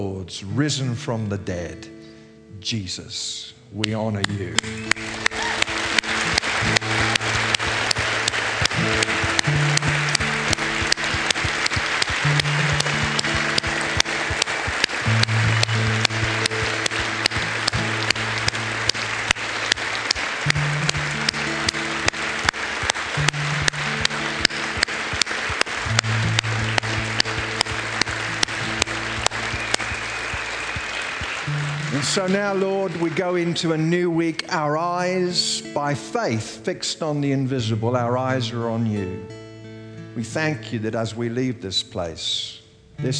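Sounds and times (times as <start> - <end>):
speech: 0.0 - 5.2, 32.2 - 39.4, 40.2 - 43.1
audience applause: 4.6 - 34.0.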